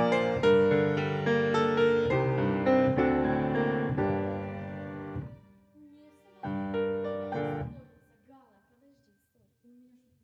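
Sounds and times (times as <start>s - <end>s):
piano: 0.0s - 8.2s.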